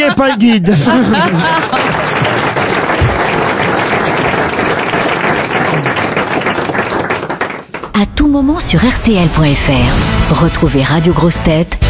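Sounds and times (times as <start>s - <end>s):
laughter: 0.0s - 3.3s
speech: 0.1s - 2.0s, 8.3s - 11.8s
audience applause: 0.9s - 8.0s.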